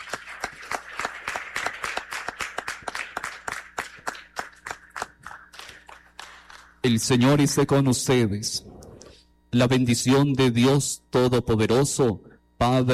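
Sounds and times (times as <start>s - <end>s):
audience applause: 0.0s - 6.8s
speech: 6.8s - 8.7s, 9.5s - 12.9s.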